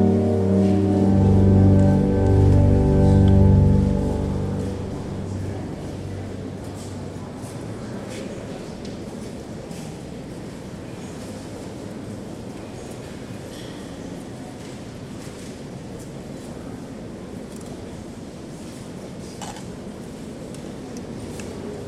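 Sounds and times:
organ in Notre Dame in Paris playing deep low chords: 0:00.0 - 0:07.0
murmur of the church atmosphere: 0:00.0 - 0:21.8.

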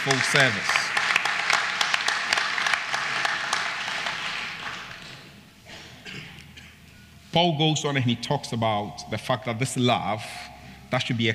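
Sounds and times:
speech: 0:00.0 - 0:00.9, 0:07.3 - 0:11.3
audience applauding: 0:00.0 - 0:05.2.

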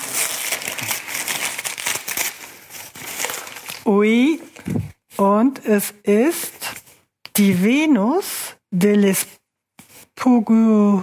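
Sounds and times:
paper package torn open and crumpled: 0:00.0 - 0:03.9
speech: 0:03.9 - 0:06.5, 0:07.4 - 0:09.4, 0:10.2 - 0:11.0.

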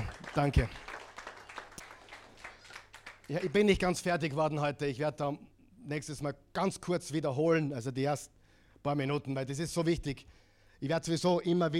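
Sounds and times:
audience applause: 0:00.0 - 0:03.7
speech: 0:00.4 - 0:00.9, 0:03.3 - 0:11.7.

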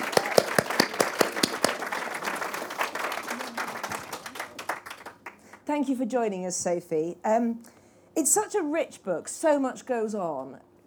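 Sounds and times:
audience applause: 0:00.0 - 0:05.5
speech: 0:05.7 - 0:10.7.

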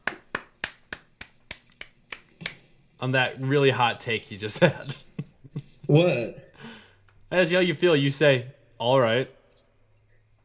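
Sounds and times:
slow sparse hand claps as a mock round of applause: 0:00.0 - 0:02.6
speech: 0:03.0 - 0:05.1, 0:05.9 - 0:06.5, 0:07.3 - 0:09.4.

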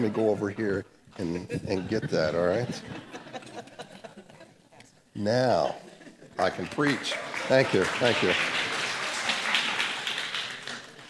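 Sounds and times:
speech: 0:00.0 - 0:03.2, 0:05.2 - 0:08.6
laughter: 0:01.2 - 0:04.8, 0:05.4 - 0:11.0
audience clapping: 0:06.4 - 0:11.0.

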